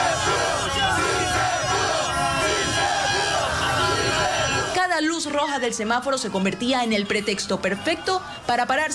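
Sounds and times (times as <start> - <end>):
football fans chanting in the street: 0.0 - 4.8
speech: 5.3 - 8.9.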